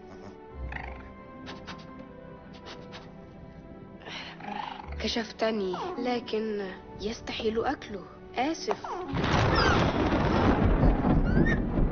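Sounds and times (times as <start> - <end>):
speech: 5.0 - 9.9
thunder from lightning: 9.1 - 11.9.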